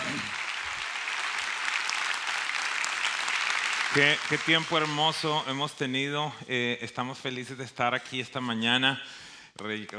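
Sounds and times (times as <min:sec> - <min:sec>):
audience applause: 0:00.0 - 0:05.4
speech: 0:03.9 - 0:09.9.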